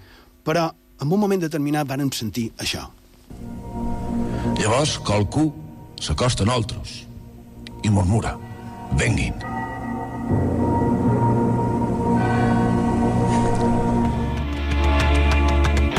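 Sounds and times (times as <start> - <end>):
speech: 0.4 - 3.6, 4.6 - 7.1, 7.8 - 9.6, 10.3 - 10.7
church bells of Sant Eulari ringing: 4.6 - 15.8.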